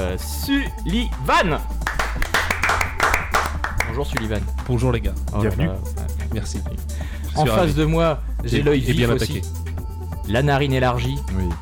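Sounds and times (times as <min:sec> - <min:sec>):
speech: 0:00.0 - 0:02.3, 0:04.0 - 0:09.6, 0:10.3 - 0:11.6
hand clapping applause: 0:01.8 - 0:04.6.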